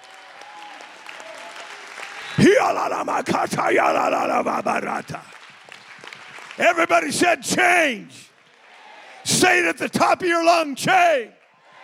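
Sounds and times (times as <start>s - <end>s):
audience applauding: 0.0s - 9.2s
speech: 2.4s - 5.4s, 6.6s - 8.3s, 9.4s - 11.4s.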